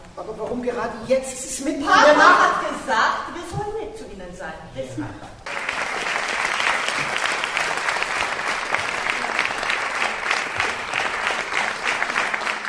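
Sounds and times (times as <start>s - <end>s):
speech: 0.2s - 5.3s
theater audience applause: 5.5s - 12.6s.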